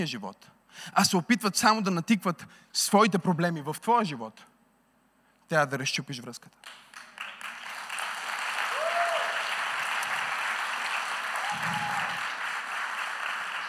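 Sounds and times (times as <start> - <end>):
speech: 0.0 - 4.5, 5.5 - 7.0
audience applauding: 6.6 - 13.6.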